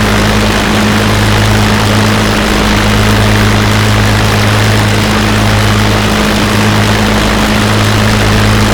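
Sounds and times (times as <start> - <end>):
DB605 aircraft engines: 0.0 - 8.7.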